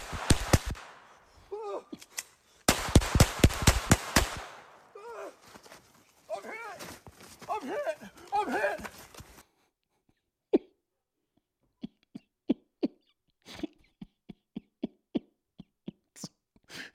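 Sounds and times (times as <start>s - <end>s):
gunshots from a played police acorn-drill video: 0.0s - 1.3s, 2.7s - 5.0s
people shouting: 1.5s - 1.9s, 4.9s - 5.6s, 6.3s - 9.0s.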